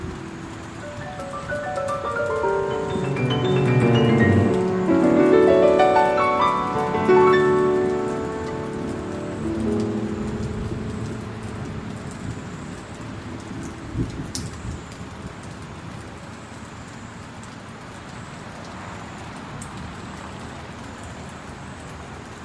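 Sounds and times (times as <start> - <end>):
piano music: 0.0 - 14.8
steady rain: 0.0 - 22.4.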